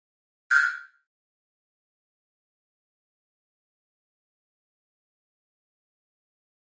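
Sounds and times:
electronic flash beep: 0.5 - 1.0.

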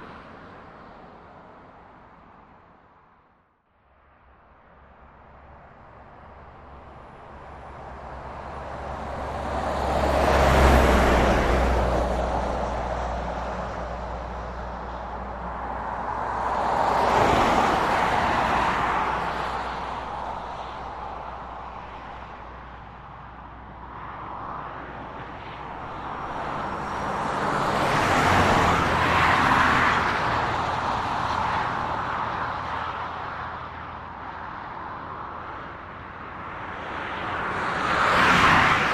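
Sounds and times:
highway traffic: 0.0 - 38.9.

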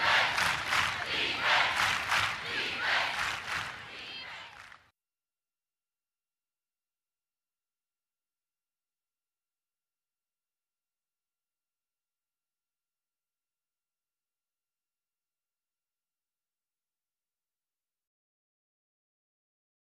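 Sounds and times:
football crowd in sports arena chanting defence: 0.0 - 4.8.

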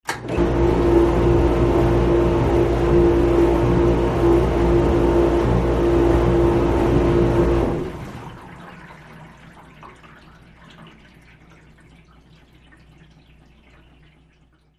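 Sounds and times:
dishwasher running: 0.0 - 9.8.

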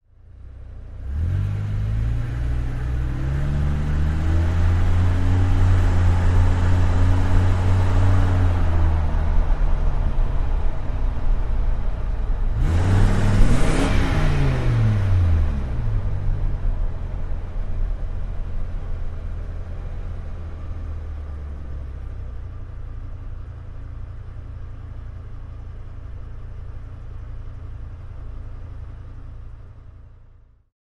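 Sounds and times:
Dodge Ram engine during fast driving and acceleration: 0.9 - 24.4.

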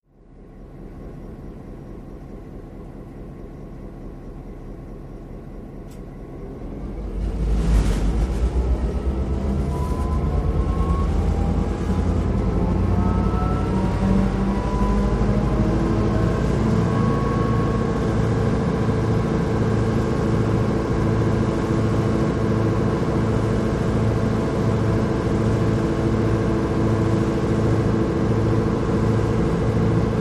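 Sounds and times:
diesel train engine revving up and down: 6.7 - 30.1.

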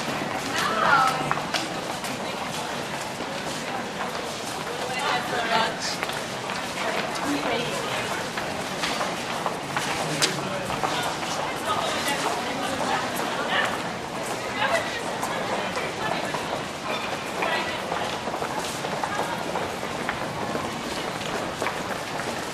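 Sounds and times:
crowd murmur in a train station: 0.0 - 22.5.

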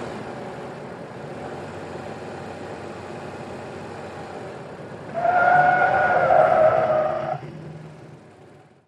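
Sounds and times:
SUV truck skidding in a 180 turn: 5.1 - 7.5.

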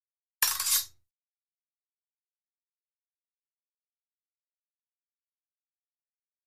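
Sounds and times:
fencing swords sliding: 0.4 - 0.9.

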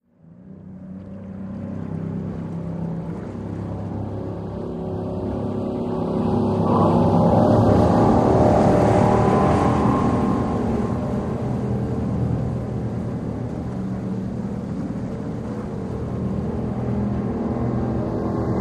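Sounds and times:
military PBR boat engine circling offshore at fast speed: 0.1 - 18.5
boat wake lapping on shore: 0.3 - 18.5.

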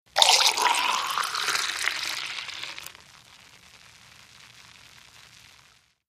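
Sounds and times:
beer pouring: 0.1 - 3.0.

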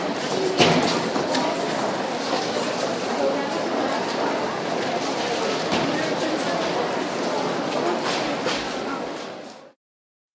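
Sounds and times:
crowd inside a department store: 0.0 - 9.8.

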